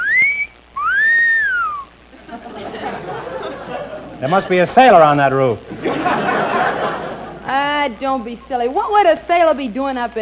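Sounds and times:
eerie high whistling tones: 0.0s - 2.0s
laughter: 2.1s - 7.8s
speech: 4.2s - 5.8s, 7.9s - 10.2s.

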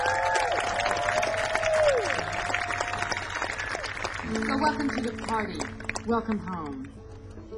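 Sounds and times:
crowd applause and cheering at the Falcon Ridge folk festival: 0.0s - 6.2s
speech: 4.6s - 7.0s.

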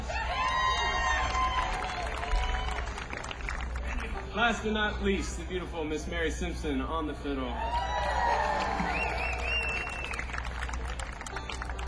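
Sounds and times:
audience cheering: 0.0s - 3.3s, 7.6s - 10.6s
audience applause: 0.0s - 4.3s, 7.6s - 11.8s
speech: 4.4s - 8.1s.

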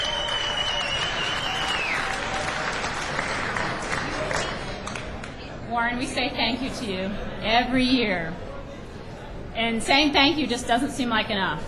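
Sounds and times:
audience applause welcoming the communications director of Asheville Area Habitat: 0.0s - 5.3s
speech: 5.9s - 8.4s, 9.6s - 11.6s.

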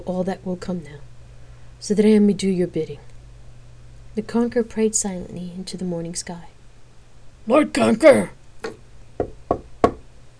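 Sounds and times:
speech: 0.0s - 1.1s, 1.8s - 3.1s, 4.2s - 6.5s, 7.4s - 8.8s
knocking on a door: 8.6s - 10.0s.

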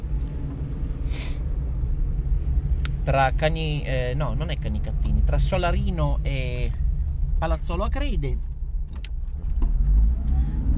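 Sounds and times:
car driving on a road between Solarino and Palazzolo Acreide: 0.0s - 10.7s
brief airy hiss: 1.1s - 1.4s
speech: 3.1s - 6.8s, 7.4s - 8.5s.

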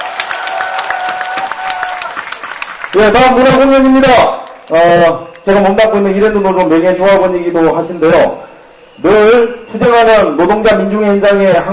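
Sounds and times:
crowd clapping at a labor union rally in Incheon: 0.0s - 5.6s
crowd noise at a labor union rally in Incheon: 0.0s - 11.7s
speech: 2.9s - 11.7s.

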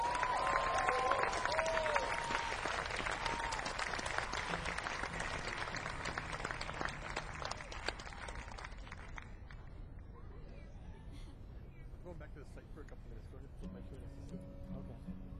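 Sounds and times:
audience clapping for a guitarist and singer at a live show: 0.0s - 9.7s.

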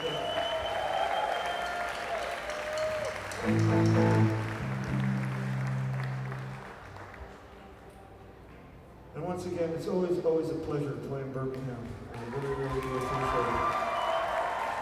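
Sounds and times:
audience clapping and cheering: 0.0s - 7.8s, 11.6s - 14.8s
speech: 3.4s - 4.4s, 9.4s - 13.9s
low musical chord or drone: 3.4s - 8.3s.

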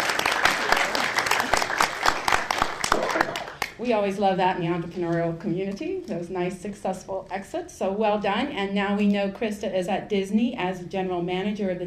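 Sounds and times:
audience applause: 0.0s - 3.8s
speech: 3.8s - 11.8s.

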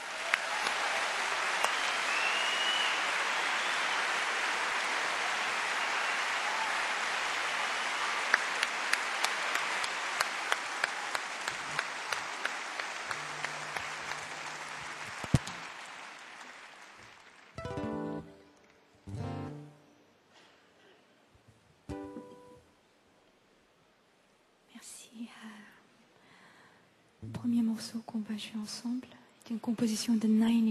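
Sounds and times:
audience applause: 0.0s - 18.3s
speech: 27.4s - 30.6s.

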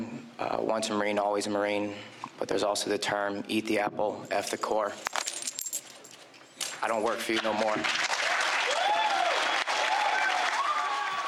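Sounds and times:
speech: 0.6s - 5.2s, 6.8s - 8.0s
audience applause: 7.4s - 11.2s
cheers and whistles: 8.6s - 11.2s.

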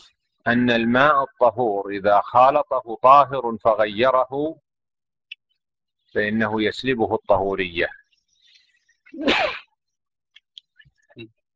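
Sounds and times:
speech: 0.4s - 4.6s, 6.1s - 8.0s, 9.1s - 9.6s, 11.2s - 11.4s
person sneezing: 9.2s - 9.7s.

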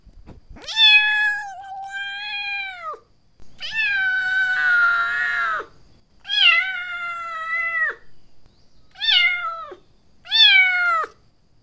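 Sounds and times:
cat meowing: 0.6s - 3.0s, 3.6s - 5.7s, 6.3s - 8.0s, 8.9s - 11.2s.

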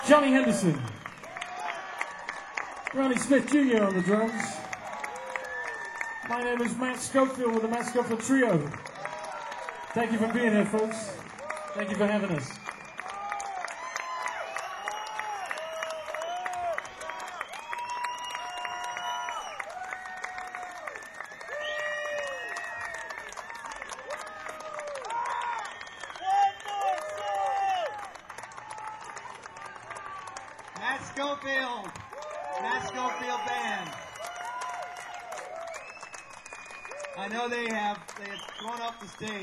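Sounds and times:
audience applauding: 0.0s - 39.4s
speech: 0.1s - 1.0s, 2.9s - 4.6s, 6.3s - 8.9s, 10.0s - 11.2s, 11.8s - 12.6s
whoops and shouts: 3.6s - 6.4s, 12.6s - 29.2s, 32.1s - 36.0s, 36.6s - 37.2s.

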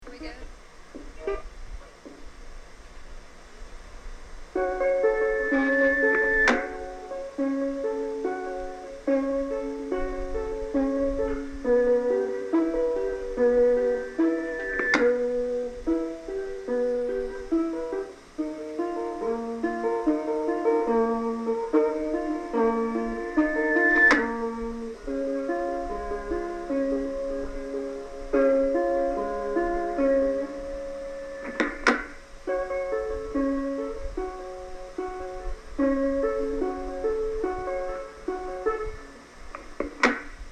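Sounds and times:
guitar feedback: 4.6s - 9.6s, 11.6s - 18.0s, 21.1s - 32.3s
electric guitar: 4.6s - 39.2s.

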